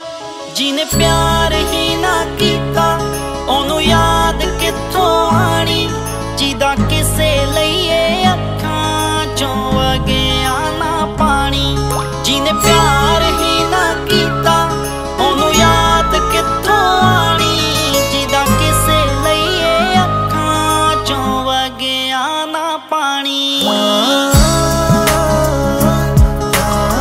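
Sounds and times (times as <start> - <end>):
sad Punjabi song ringtone: 0.0 - 26.9.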